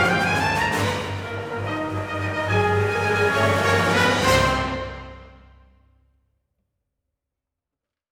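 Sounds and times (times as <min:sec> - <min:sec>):
coronation fanfare: 0:00.0 - 0:05.8.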